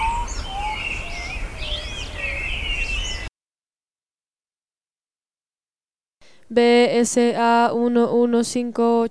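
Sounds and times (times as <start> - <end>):
birds calling in a dense chorus: 0.0 - 3.3
speech: 6.5 - 9.0.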